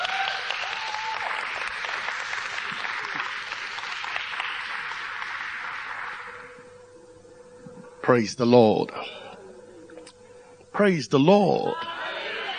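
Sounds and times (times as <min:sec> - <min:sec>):
audience applause at a church service: 0:00.0 - 0:06.5
speech: 0:08.1 - 0:09.2, 0:10.8 - 0:12.0.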